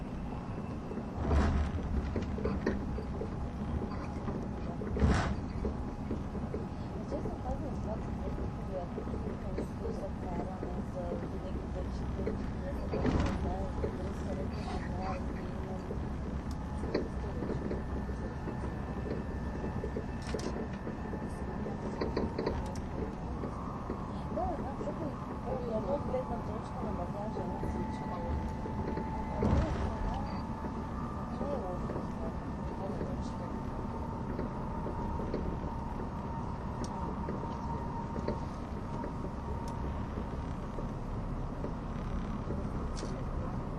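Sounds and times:
ETR610 tilting EuroCity train running rumble: 0.0s - 43.7s
murmured voices: 2.4s - 35.8s.

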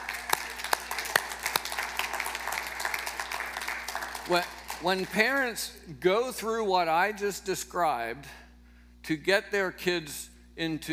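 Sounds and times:
audience applause: 0.0s - 5.4s
speech: 4.3s - 8.4s, 9.1s - 10.9s.

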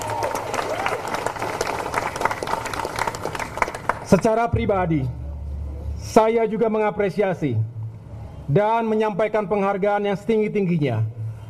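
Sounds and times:
audience applause: 0.0s - 4.0s
speech: 4.1s - 5.2s, 6.0s - 7.7s, 8.5s - 11.2s.

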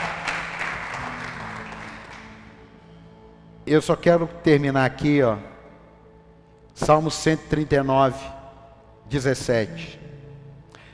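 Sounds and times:
audience applause: 0.0s - 2.5s
speech: 3.7s - 5.5s, 6.8s - 8.4s, 9.1s - 10.0s.

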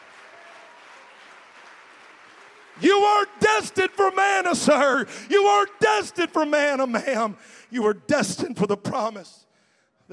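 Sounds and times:
audience clapping: 0.0s - 4.2s
speech: 2.8s - 9.4s.

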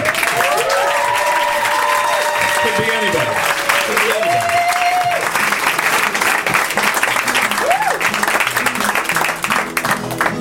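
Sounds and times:
audience clapping: 0.0s - 10.3s
voices whooping: 0.3s - 5.3s, 7.6s - 8.0s.

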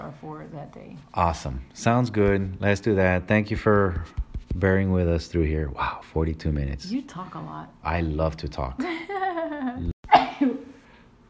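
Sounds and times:
speech: 0.2s - 9.9s
sneeze: 10.1s - 10.7s.

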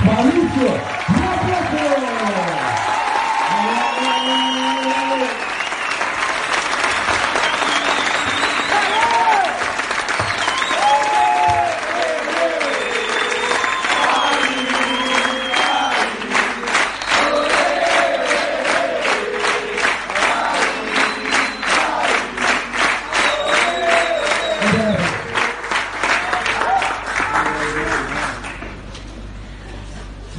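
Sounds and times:
audience applause: 0.0s - 28.9s
cheering shouts: 0.3s - 5.5s, 8.4s - 16.3s, 17.1s - 22.4s, 23.1s - 25.4s, 26.2s - 27.7s
whistles: 3.7s - 6.0s, 7.3s - 9.3s, 10.1s - 11.2s, 12.7s - 16.0s, 20.9s - 21.9s, 23.1s - 25.2s.

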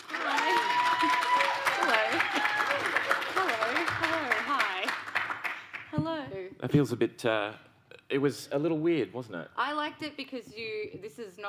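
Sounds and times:
audience applause: 0.0s - 5.9s
speech: 6.6s - 11.4s.

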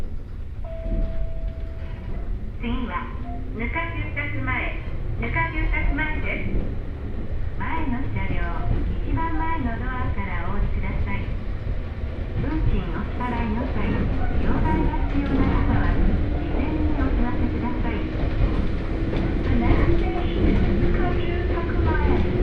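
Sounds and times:
Hokuriku Railway Ishikawa Line train rumble: 0.0s - 22.4s
passengers talking: 0.9s - 22.4s.

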